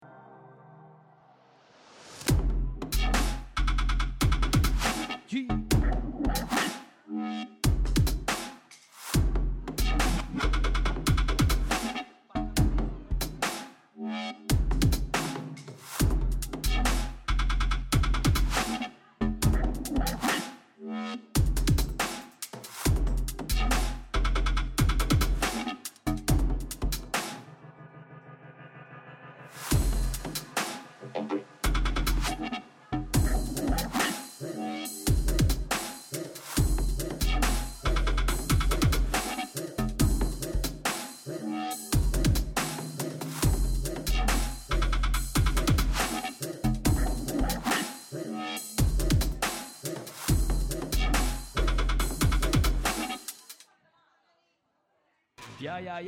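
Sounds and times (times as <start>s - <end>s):
deep dark dubstep: 2.2s - 8.4s, 9.2s - 53.5s.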